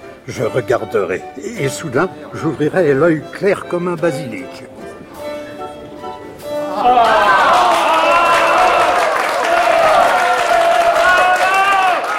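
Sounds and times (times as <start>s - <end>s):
speech: 0.2s - 4.8s, 6.8s - 7.3s
crowd cheering and shouting: 6.6s - 12.1s
frenzied audience applause: 6.8s - 12.1s.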